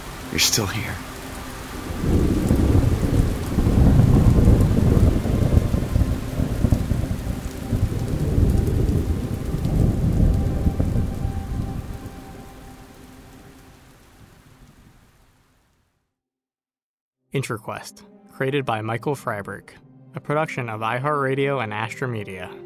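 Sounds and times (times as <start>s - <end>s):
heavy rainfall on surfaces at sunset: 0.0s - 15.8s
speech: 0.3s - 1.1s, 17.4s - 22.6s
rolling thunder: 1.7s - 13.0s.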